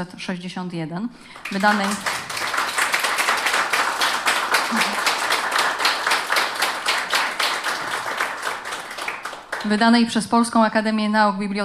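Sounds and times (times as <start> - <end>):
speech: 0.0 - 2.2, 4.7 - 4.9, 9.6 - 11.6
audience applause at award ceremony: 1.4 - 10.0.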